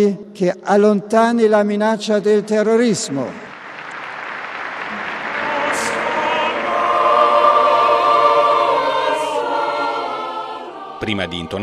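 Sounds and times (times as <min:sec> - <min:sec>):
speech: 0:00.0 - 0:03.5, 0:11.0 - 0:11.6
large crowd applauding and cheering: 0:03.2 - 0:11.6.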